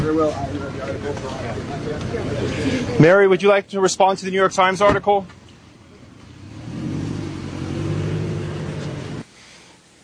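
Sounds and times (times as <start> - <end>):
speech: 0.0 - 5.4
car engine revving as the car drives away: 6.0 - 9.2.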